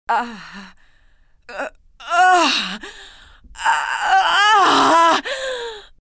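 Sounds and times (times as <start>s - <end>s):
person moaning: 1.5s - 3.0s, 3.6s - 5.7s.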